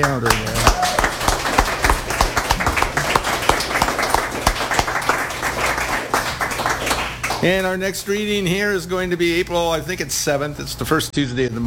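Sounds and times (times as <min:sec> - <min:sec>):
speech: 0:00.0 - 0:00.6, 0:07.4 - 0:11.6
room full of people applauding: 0:00.0 - 0:07.7.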